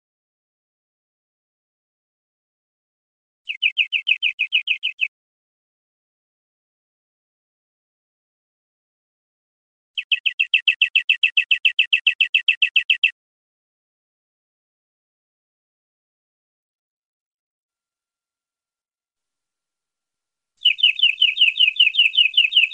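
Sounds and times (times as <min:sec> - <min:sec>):
European greenfinch buzzy trill: 0:03.5 - 0:05.1, 0:10.0 - 0:13.1, 0:20.6 - 0:22.7.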